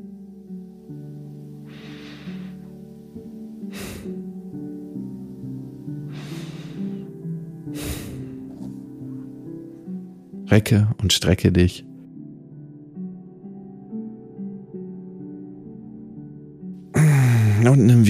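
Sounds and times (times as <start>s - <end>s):
soft sustained music: 0.0s - 18.0s
slow deep breathing during a guided relaxation: 1.7s - 2.8s, 3.6s - 4.5s, 5.9s - 10.0s, 17.0s - 17.8s
speech: 10.5s - 11.9s.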